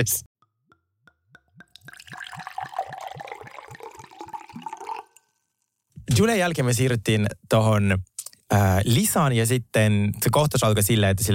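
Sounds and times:
speech: 0.0s - 0.3s, 6.1s - 11.3s
wine being poured into glasses: 1.6s - 5.6s.

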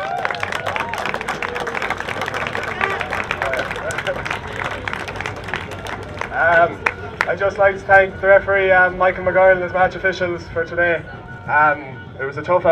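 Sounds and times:
shouts and cheering: 0.0s - 6.6s
crowd applauding: 0.0s - 7.4s
speech: 6.6s - 12.7s.

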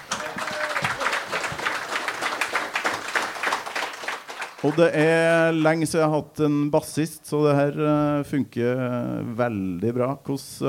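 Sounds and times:
crowd applause: 0.0s - 5.6s
speech: 4.6s - 10.6s.

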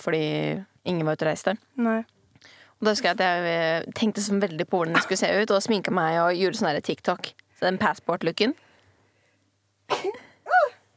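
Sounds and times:
speech: 0.0s - 8.6s, 9.9s - 10.3s
sneeze: 9.9s - 10.8s.

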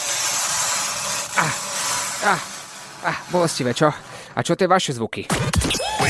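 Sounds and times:
fingernails scratching on a chalkboard: 0.0s - 3.8s
speech: 1.4s - 6.0s.

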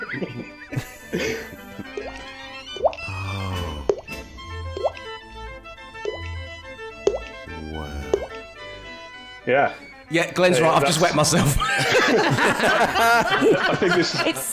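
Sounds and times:
laughter: 0.0s - 1.9s, 11.4s - 14.5s
speech: 1.1s - 2.0s, 9.5s - 14.5s
voice imitating dripping water: 2.8s - 4.1s, 7.1s - 8.3s.

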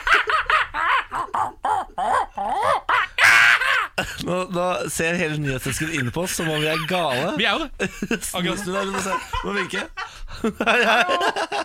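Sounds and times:
laughter: 0.0s - 4.3s, 5.1s - 11.6s
person imitating monkey calls: 1.3s - 3.9s
speech: 4.3s - 11.6s.

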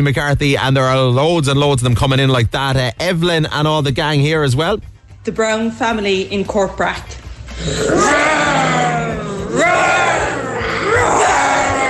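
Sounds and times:
speech: 0.0s - 8.5s
family imitating a tiger's roar: 7.6s - 11.8s.

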